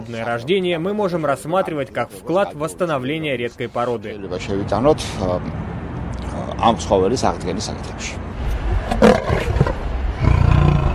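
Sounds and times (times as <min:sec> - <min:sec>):
speech: 0:00.0 - 0:05.8, 0:06.4 - 0:08.3
lion roaring: 0:08.8 - 0:10.9.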